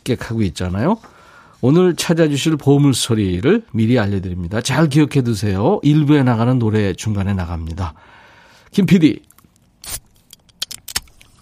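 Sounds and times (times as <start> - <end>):
speech: 0.0 - 10.0
beer can cracking open with fizzing hiss: 9.8 - 11.4.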